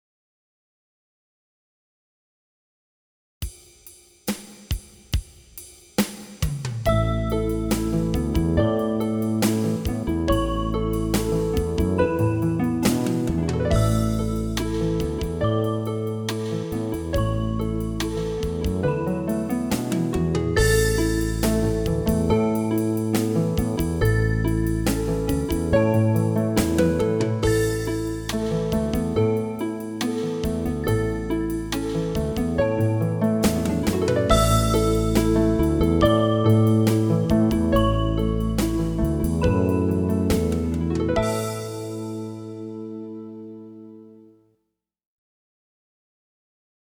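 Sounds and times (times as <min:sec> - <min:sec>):
new age piano: 0:06.9 - 0:44.3.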